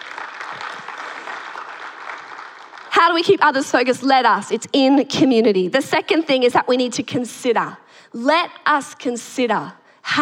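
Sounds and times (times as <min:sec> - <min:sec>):
congregation clapping at a church service: 0:00.0 - 0:03.3
speech: 0:03.0 - 0:10.2.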